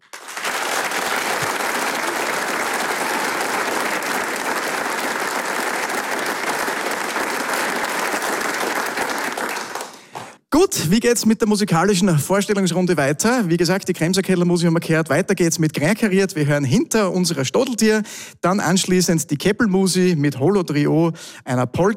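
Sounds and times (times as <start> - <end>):
audience applause in the Arbeiterheimsaal hall in Vonsdorf: 0.0 - 10.4
speech: 10.6 - 21.9.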